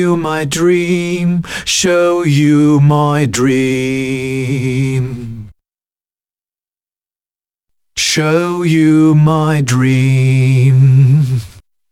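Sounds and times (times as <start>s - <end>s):
vocal mix music: 0.0s - 5.6s, 8.0s - 11.6s.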